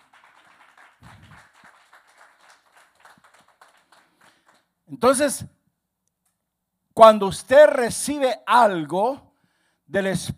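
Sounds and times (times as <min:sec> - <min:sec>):
audience applauding: 0:00.0 - 0:04.7
speech: 0:04.9 - 0:05.6, 0:07.0 - 0:09.3, 0:09.9 - 0:10.3.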